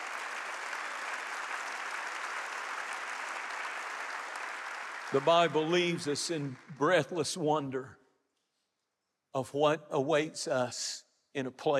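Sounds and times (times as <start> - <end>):
audience clapping hands: 0.0 - 7.4
speech: 5.1 - 8.0, 9.3 - 11.7.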